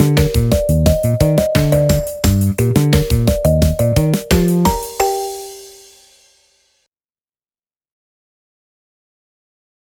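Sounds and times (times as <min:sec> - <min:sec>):
instrumental music: 0:00.0 - 0:06.6.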